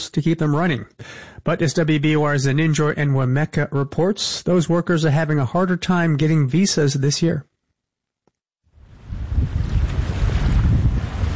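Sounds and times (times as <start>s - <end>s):
speech: 0.0s - 7.5s
ocean waves on Cape Cod: 8.8s - 11.3s.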